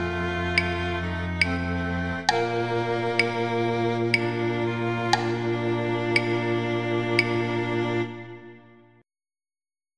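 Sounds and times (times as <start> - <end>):
viola: 0.0 - 9.0.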